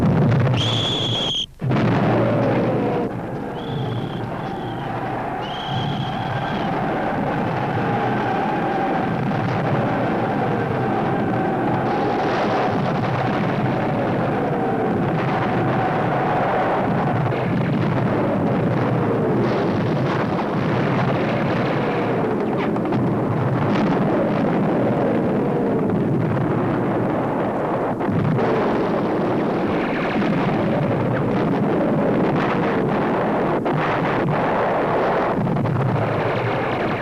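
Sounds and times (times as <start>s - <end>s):
barrage of 75mm artillery guns firing in a trench battle film scene: 0.0s - 36.9s
brief high whistling tones: 0.5s - 1.6s, 3.2s - 7.0s.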